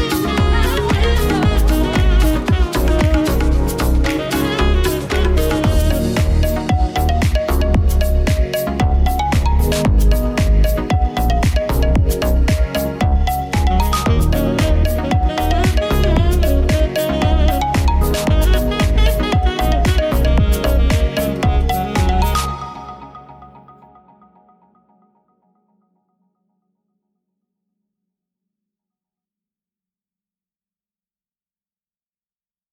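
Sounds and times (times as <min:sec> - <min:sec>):
saxophone: 0:00.0 - 0:24.2.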